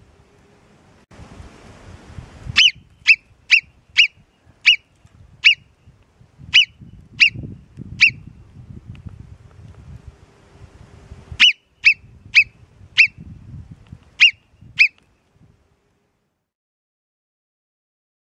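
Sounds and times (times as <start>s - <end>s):
Alpine marmot Marmota marmota giving shrill whistles: 2.6s - 5.7s, 6.5s - 8.3s, 11.4s - 13.2s, 14.2s - 15.0s.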